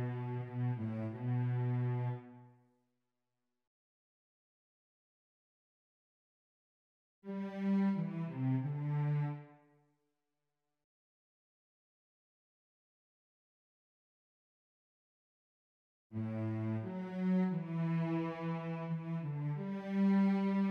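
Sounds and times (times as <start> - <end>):
cello: 0.0 - 2.6, 7.3 - 9.7, 16.2 - 20.6.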